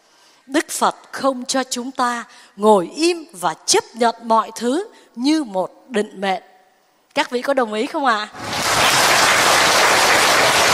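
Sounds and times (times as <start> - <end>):
speech: 0.5 - 6.5, 7.2 - 9.0
audience applause at a Buddhist dharma talk: 8.4 - 10.7.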